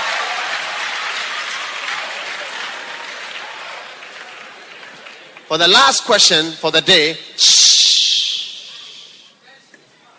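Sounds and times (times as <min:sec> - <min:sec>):
crowd clapping: 0:00.0 - 0:06.3
speech: 0:05.5 - 0:08.0.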